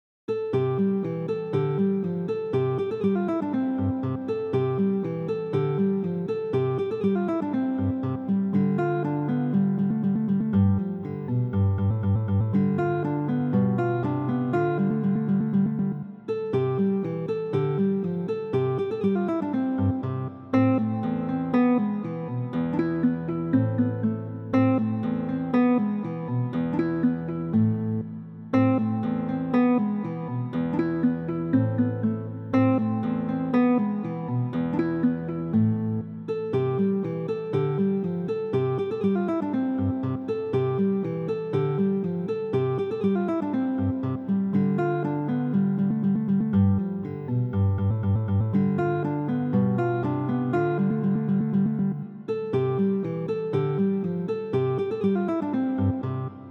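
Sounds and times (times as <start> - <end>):
guitar piece: 0.3 - 56.5.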